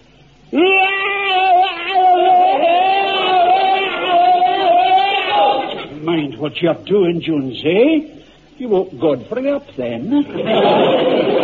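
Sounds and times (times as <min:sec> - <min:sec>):
man's bayonet charge battle scream: 0:00.5 - 0:06.0
laughter: 0:01.5 - 0:05.9, 0:10.1 - 0:11.4
speech: 0:06.4 - 0:11.4.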